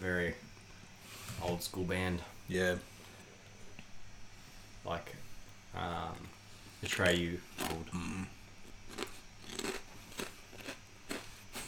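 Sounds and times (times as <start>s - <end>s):
speech: 0.0s - 0.5s, 1.3s - 2.9s, 4.8s - 9.7s
low hum: 0.0s - 11.6s
person crunching and chewing food while recording a podcast: 6.0s - 11.6s.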